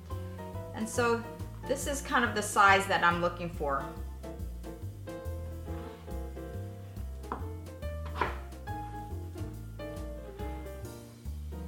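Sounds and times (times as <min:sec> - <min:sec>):
music with sustained tones: 0:00.0 - 0:11.6
speech: 0:00.8 - 0:04.1
knife slicing sweet potatoes into thin rounds: 0:08.0 - 0:08.6.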